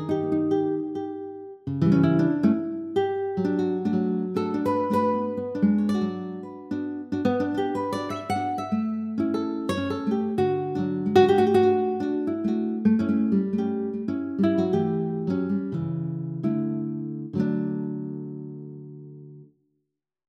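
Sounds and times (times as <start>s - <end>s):
acoustic guitar study: 0.0s - 19.5s.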